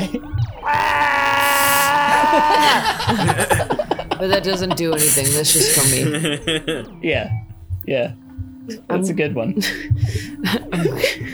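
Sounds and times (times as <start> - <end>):
laughter: 0.0 - 11.3
talk: 0.0 - 11.3
voice letting out an unearthly shriek: 0.6 - 6.6
speech: 4.2 - 11.3.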